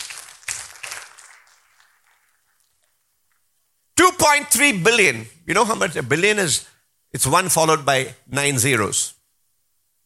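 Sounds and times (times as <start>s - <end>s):
audience clapping: 0.0s - 3.4s
speech: 4.2s - 9.2s.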